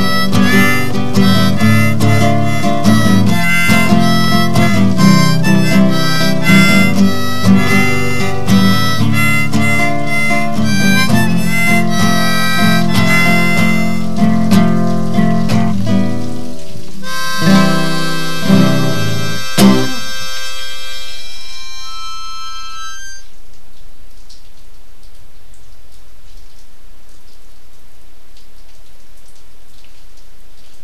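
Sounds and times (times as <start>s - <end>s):
folk rain song: 0.0s - 23.2s.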